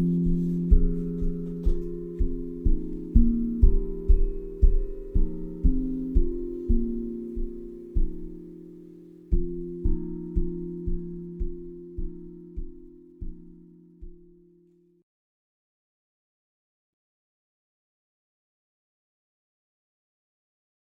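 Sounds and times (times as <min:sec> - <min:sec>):
drum: 0:00.0 - 0:08.4, 0:09.3 - 0:14.3
meditative melody: 0:00.0 - 0:14.9.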